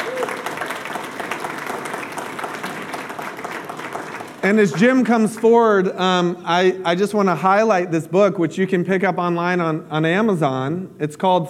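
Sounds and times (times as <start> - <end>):
audience applause: 0.0 - 5.9
speech: 4.4 - 11.4.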